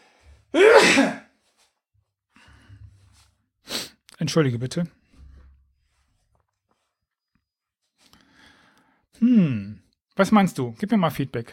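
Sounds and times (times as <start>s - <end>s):
loud sneeze: 0.6s - 1.3s
speech: 4.2s - 5.0s, 10.2s - 11.5s.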